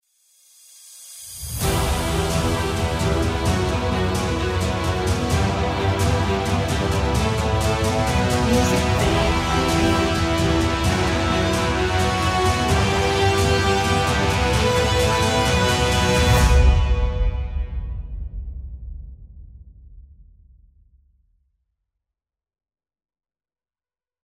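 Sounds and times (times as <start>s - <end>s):
dramatic epic cinematic intro music: 1.4s - 19.0s.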